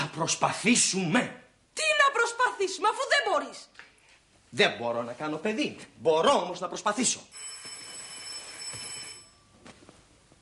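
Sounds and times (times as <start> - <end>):
speech: 0.2 - 3.8, 4.5 - 7.5
telephone ringing: 7.3 - 9.8.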